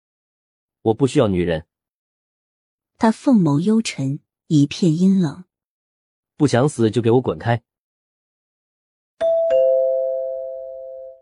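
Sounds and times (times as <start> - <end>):
speech: 0.8 - 1.7, 3.0 - 5.5, 6.4 - 7.7
doorbell ringing: 9.2 - 11.2.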